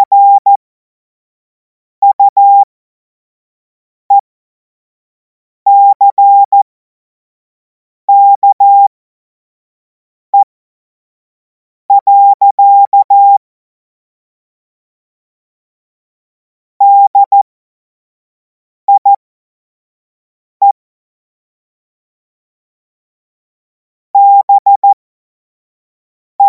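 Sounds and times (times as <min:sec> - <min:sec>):
CW Morse code beeps: 0:00.0 - 0:00.6, 0:02.0 - 0:02.7, 0:05.7 - 0:06.6, 0:08.1 - 0:08.9, 0:11.9 - 0:13.4, 0:16.8 - 0:17.4, 0:18.9 - 0:19.1, 0:24.2 - 0:25.0.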